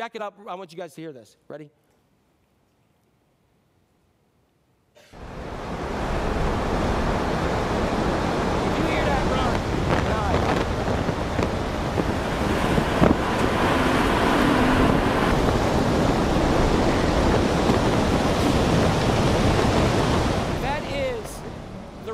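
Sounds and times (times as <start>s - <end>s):
speech: 0.0s - 1.9s
tornado roaring: 5.2s - 22.1s.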